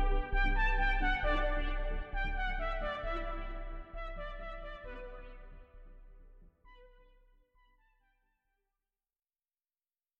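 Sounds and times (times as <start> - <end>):
hydro house music: 0.0 - 6.2.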